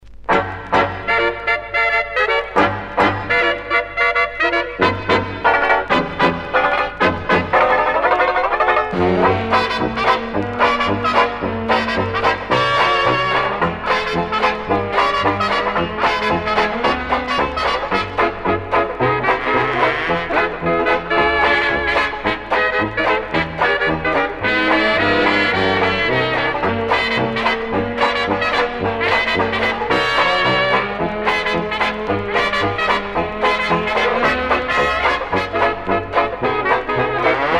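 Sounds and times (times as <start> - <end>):
banjo: 0.3 - 37.5.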